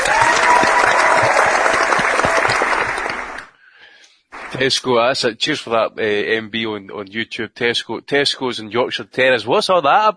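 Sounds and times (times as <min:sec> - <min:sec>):
loud round of applause: 0:00.0 - 0:03.5, 0:04.4 - 0:04.8
speech: 0:04.6 - 0:10.1.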